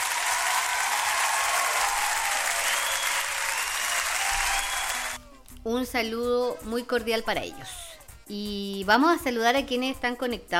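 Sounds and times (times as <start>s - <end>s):
applause: 0.0s - 5.2s
speech: 5.6s - 10.5s.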